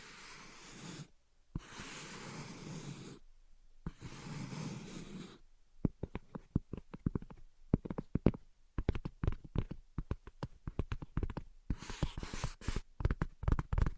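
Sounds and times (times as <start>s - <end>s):
tapping and scratching: 5.9s - 13.9s.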